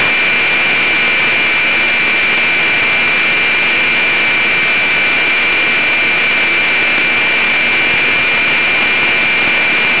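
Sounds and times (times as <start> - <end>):
static: 0.0 - 9.9.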